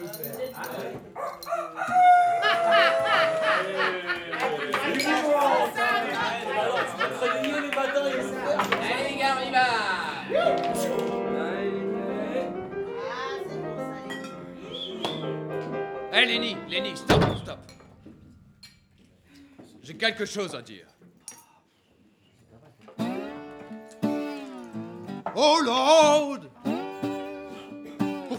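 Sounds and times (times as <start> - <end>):
chatter: 0.0 - 28.3
rooster crowing: 1.4 - 4.2
laughter: 1.6 - 13.5, 26.3 - 28.3
speech: 20.0 - 21.2, 25.4 - 26.5.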